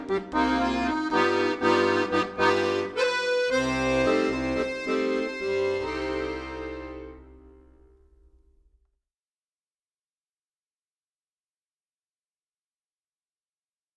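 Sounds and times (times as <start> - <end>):
bossa nova accordion composition: 0.0 - 8.0.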